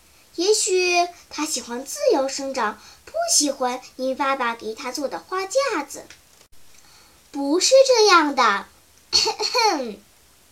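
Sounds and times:
speech: 0:00.4 - 0:06.2, 0:07.3 - 0:10.1
child clearing throat: 0:09.1 - 0:09.8.

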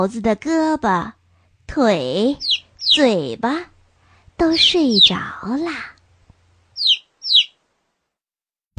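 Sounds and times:
speech: 0:00.0 - 0:03.7, 0:04.4 - 0:05.9
small bird chirping loudly: 0:02.4 - 0:03.1, 0:04.5 - 0:05.3, 0:06.8 - 0:07.6.

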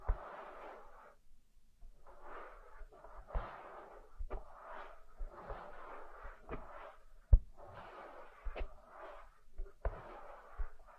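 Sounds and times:
ear massage rubbing and brushing: 0:00.0 - 0:10.9.

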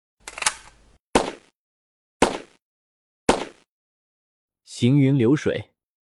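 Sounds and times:
rapid series of gunshots: 0:01.2 - 0:01.5, 0:02.2 - 0:02.6, 0:03.3 - 0:03.7
speech: 0:04.7 - 0:05.7.

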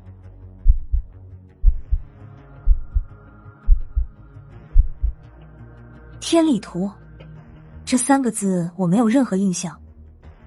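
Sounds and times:
heartbeat thumps: 0:00.6 - 0:02.1, 0:02.7 - 0:03.1, 0:03.7 - 0:04.2, 0:04.8 - 0:05.2
low steady hum: 0:02.7 - 0:03.1, 0:03.7 - 0:04.1, 0:04.8 - 0:05.2
speech: 0:06.2 - 0:07.0, 0:07.9 - 0:09.8.

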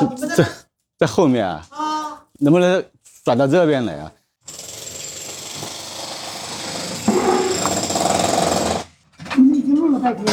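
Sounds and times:
speech: 0:00.0 - 0:01.8, 0:02.4 - 0:04.2, 0:10.0 - 0:10.3
electric drill whirring from construction work: 0:04.5 - 0:08.9.

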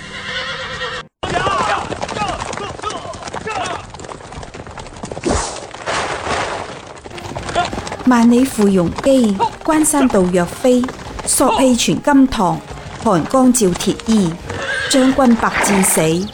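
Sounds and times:
horses whinnying: 0:00.0 - 0:04.0, 0:07.2 - 0:11.8, 0:12.6 - 0:16.3
hooves clip-clopping: 0:01.2 - 0:16.3
speech: 0:08.1 - 0:16.3.

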